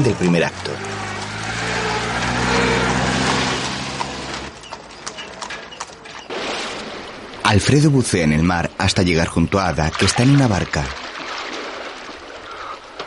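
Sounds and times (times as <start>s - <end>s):
speech: 0.0s - 1.1s, 7.5s - 11.0s
horse hooves of a mounted guard parading: 0.0s - 6.4s.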